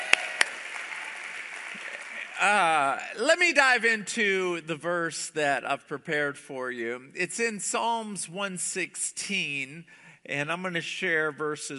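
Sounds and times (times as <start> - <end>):
hand claps: 0.0 - 2.4
speech: 2.4 - 11.7.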